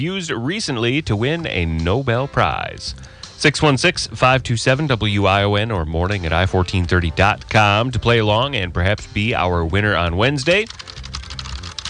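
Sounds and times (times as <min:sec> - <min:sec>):
speech: 0:00.0 - 0:10.9
typing on computer keyboards: 0:10.5 - 0:11.8.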